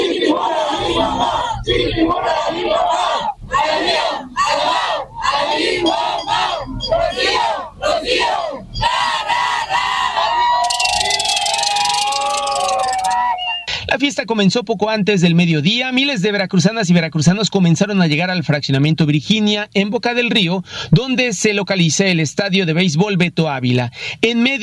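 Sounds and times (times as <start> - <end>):
crowd cheering and chanting: 0.0 - 13.7
speech: 14.4 - 24.6.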